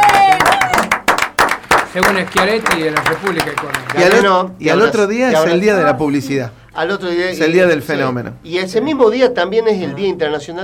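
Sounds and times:
crowd applause: 0.0s - 4.3s
people cheering: 0.0s - 4.3s
speech: 2.0s - 10.6s.

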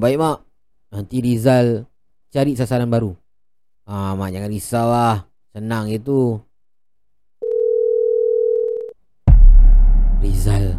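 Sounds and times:
speech: 0.0s - 3.2s, 3.9s - 6.5s, 10.2s - 10.7s
phone line tone after call hangs up: 7.4s - 9.0s.

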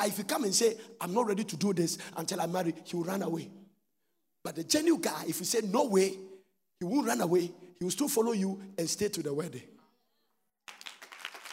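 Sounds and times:
speech: 0.0s - 3.6s, 4.4s - 9.8s
audience clapping: 10.6s - 11.5s.

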